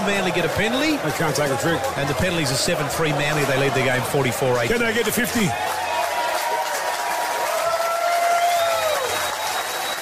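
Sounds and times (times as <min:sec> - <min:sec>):
stadium fans applauding: 0:00.0 - 0:10.0
speech: 0:00.1 - 0:05.9
thin whistling tone: 0:09.1 - 0:10.0.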